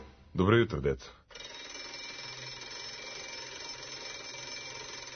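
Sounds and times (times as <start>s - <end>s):
speech: 0.5s - 1.2s
shrill electric bell or alarm ringing: 1.3s - 5.1s.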